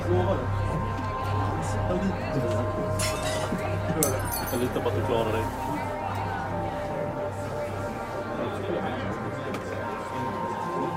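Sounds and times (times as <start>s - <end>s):
babble of many overlapping voices in a bar: 0.0s - 10.9s
glass clinks: 3.0s - 4.8s.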